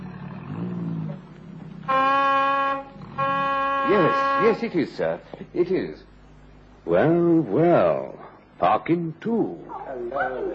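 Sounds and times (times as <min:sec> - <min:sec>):
car horn honking: 0:01.9 - 0:04.9
speech: 0:03.9 - 0:06.1, 0:06.8 - 0:10.5.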